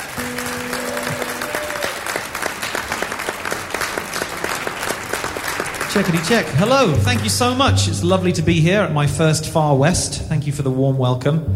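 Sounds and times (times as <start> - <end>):
audience applause: 0.0 - 7.7
speech: 6.0 - 11.5.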